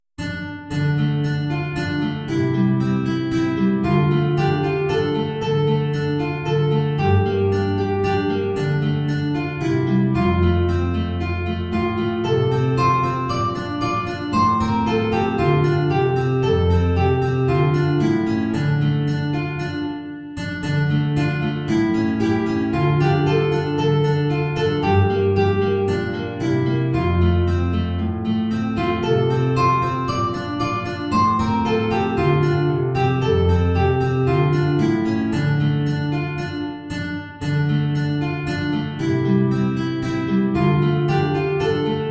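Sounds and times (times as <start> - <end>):
two guitars: 0.2 - 42.1.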